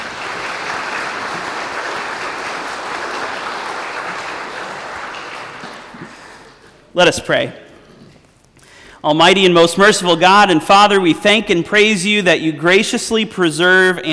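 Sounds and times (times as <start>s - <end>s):
audience applause: 0.0s - 6.8s
speech: 7.0s - 7.6s, 9.0s - 14.1s.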